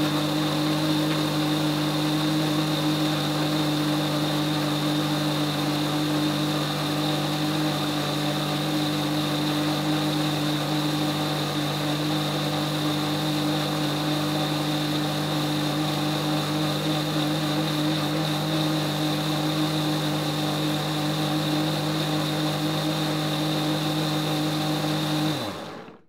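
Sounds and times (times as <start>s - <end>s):
blender running: 0.0s - 26.0s.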